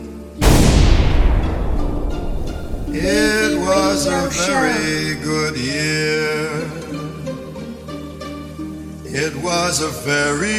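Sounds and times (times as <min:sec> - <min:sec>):
gunfire blast on a command to fire: 0:00.5 - 0:03.6
laughter: 0:02.9 - 0:05.1
speech: 0:04.1 - 0:06.6, 0:09.2 - 0:10.5.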